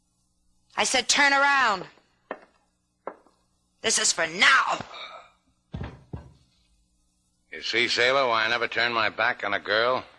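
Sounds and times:
low hum: 0.0s - 10.1s
speech: 0.8s - 2.0s, 3.8s - 5.1s, 7.6s - 10.1s
heavy dull thumps of a pistol-whipping blow: 5.7s - 6.5s.

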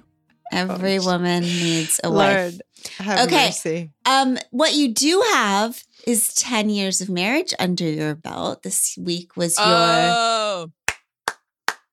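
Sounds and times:
speech: 0.5s - 10.8s
hand claps: 10.9s - 11.9s.

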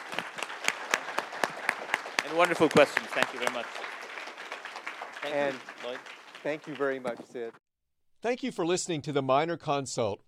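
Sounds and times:
audience round of applause: 0.0s - 7.6s
speech: 2.3s - 3.9s, 5.2s - 7.6s, 8.2s - 10.2s.

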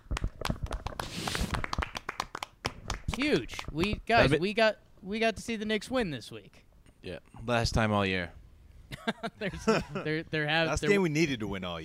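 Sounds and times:
hands clapping to celebrate a win: 0.0s - 4.1s
speech: 3.2s - 8.4s, 9.0s - 11.8s.

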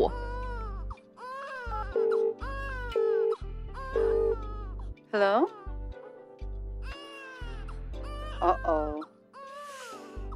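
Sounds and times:
baby crying: 0.0s - 4.8s, 6.8s - 10.3s
speech: 5.2s - 5.6s.

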